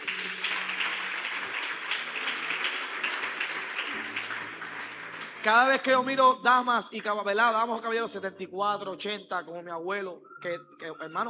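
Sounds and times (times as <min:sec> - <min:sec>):
audience applause: 0:00.0 - 0:06.2
speech: 0:05.4 - 0:11.2.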